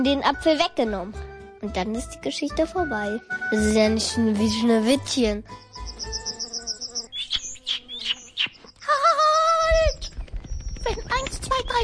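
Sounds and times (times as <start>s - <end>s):
speech: 0.0s - 5.7s
bird chirping: 5.4s - 11.8s
insect-like trill: 5.5s - 11.1s.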